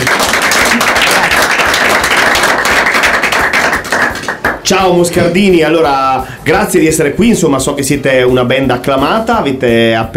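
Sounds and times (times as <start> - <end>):
studio audience applause: 0.0 - 4.6
speech: 4.7 - 10.1.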